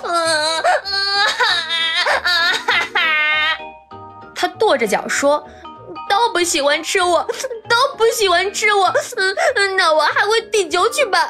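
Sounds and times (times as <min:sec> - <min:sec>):
children's story character sobbing and wailing in grief: 0:00.0 - 0:03.7, 0:07.2 - 0:07.8, 0:08.8 - 0:09.7
speech: 0:04.8 - 0:05.6, 0:06.2 - 0:11.2.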